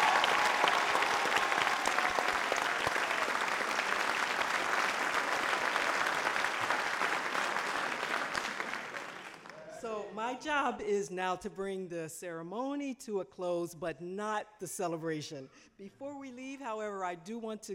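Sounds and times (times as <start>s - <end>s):
audience applause for graduates: 0.0s - 9.8s
speech: 10.4s - 17.7s.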